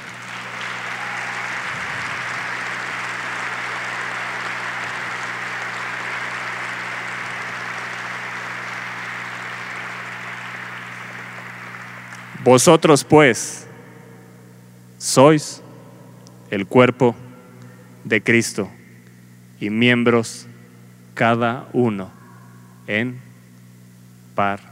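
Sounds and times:
audience applause: 0.0 - 12.9
speech: 12.4 - 13.7, 15.1 - 15.6, 16.5 - 17.2, 18.0 - 18.8, 19.6 - 20.5, 21.2 - 22.2, 22.9 - 23.3, 24.4 - 24.7.

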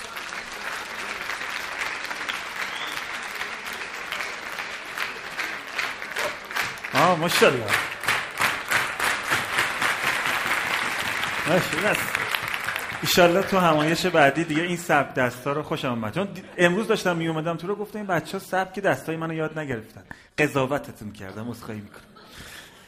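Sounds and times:
large audience applause: 0.0 - 14.7
speech: 7.2 - 7.9, 11.5 - 22.5.

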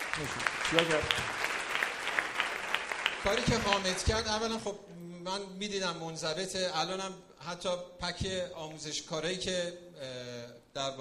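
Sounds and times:
crowd applauding: 0.0 - 4.6
speech: 0.2 - 1.4, 3.2 - 10.9.

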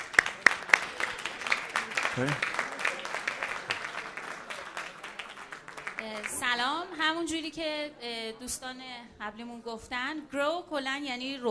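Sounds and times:
audience applause: 0.0 - 6.5
speech: 2.2 - 2.5, 6.3 - 11.4.

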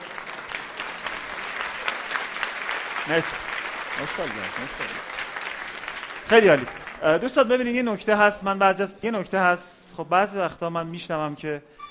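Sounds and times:
audience applause: 0.0 - 7.3
speech: 3.1 - 5.2, 6.3 - 11.8.

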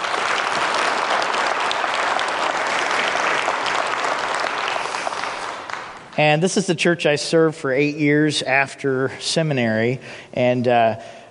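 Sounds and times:
church audience applauding to welcome visiting guests: 0.0 - 6.4
speech: 6.2 - 11.2.

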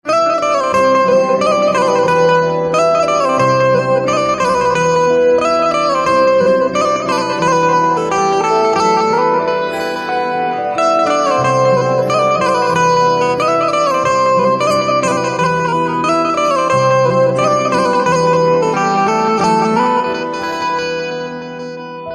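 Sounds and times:
banjo instrumental ringtone: 0.2 - 22.1.

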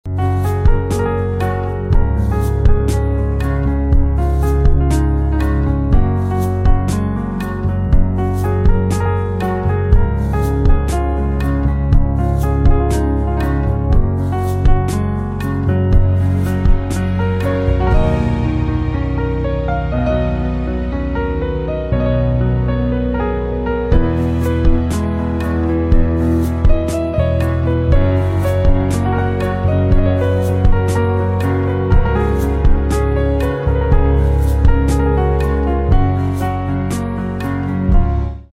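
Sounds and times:
instrumental piano ringtone: 0.4 - 38.2.

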